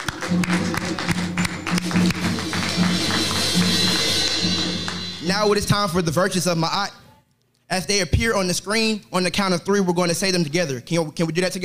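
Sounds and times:
hand clapping in praise: 0.0s - 5.2s
speech: 0.3s - 2.3s, 5.3s - 7.0s, 7.7s - 11.6s.

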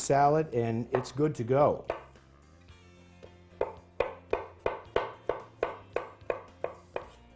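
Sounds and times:
speech: 0.1s - 2.0s
knife dicing avocado on a cutting board: 0.9s - 1.2s, 1.8s - 2.2s, 3.6s - 7.2s.

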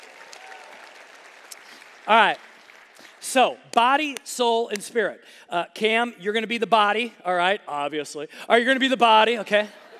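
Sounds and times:
audience applause: 0.0s - 3.2s
speech: 2.1s - 2.4s, 3.3s - 9.8s.

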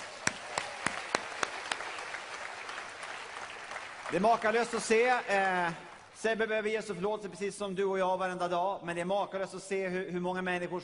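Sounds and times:
audience applause: 0.0s - 6.2s
sharp evenly spaced claps: 0.0s - 6.2s
speech: 4.1s - 10.8s.

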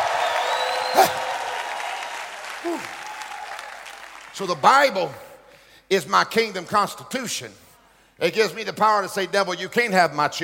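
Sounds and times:
church congregation making noise and applauding at a preacher's call: 0.0s - 5.3s
speech: 4.4s - 5.2s, 5.9s - 7.6s, 8.2s - 10.4s.

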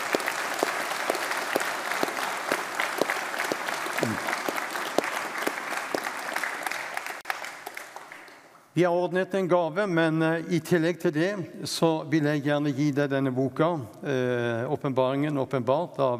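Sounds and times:
audience applause honouring a writer: 0.0s - 8.5s
speech: 8.8s - 16.1s.

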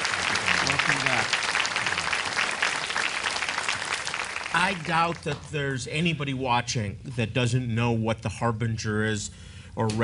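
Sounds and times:
audience clapping to welcome a guest: 0.0s - 5.6s
speech: 4.6s - 10.0s.

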